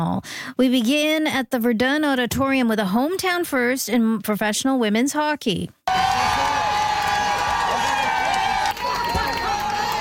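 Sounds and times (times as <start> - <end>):
speech: 0.0 - 6.3
hockey fans cheering Montreal Victoire arriving with the Walter Cup: 5.9 - 9.9.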